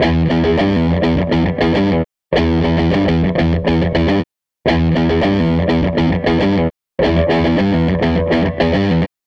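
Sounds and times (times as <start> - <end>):
Gretsch guitar loop: 0.0 - 9.2.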